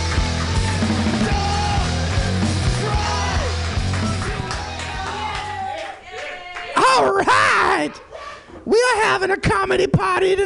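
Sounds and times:
comedy show crowd cheering and whooping: 0.0s - 8.4s
speech: 8.9s - 10.4s.

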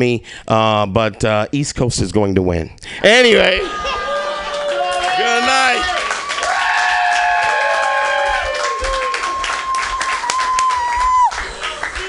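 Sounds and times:
speech: 0.0s - 4.0s
audience clapping: 4.1s - 12.0s.

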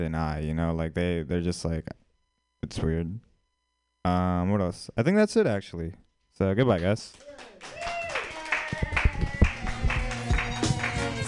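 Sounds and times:
speech: 0.0s - 2.0s, 2.6s - 3.3s, 4.0s - 7.8s
small audience clapping: 6.7s - 11.2s
voices cheering and calling out: 7.2s - 11.2s.

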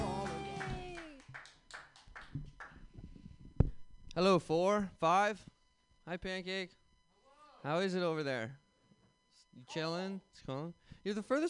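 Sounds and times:
person cheering: 0.0s - 1.2s
small crowd clapping for a comedian: 0.0s - 2.8s
speech: 4.2s - 5.5s, 6.1s - 6.8s, 7.6s - 8.6s, 9.6s - 11.4s.

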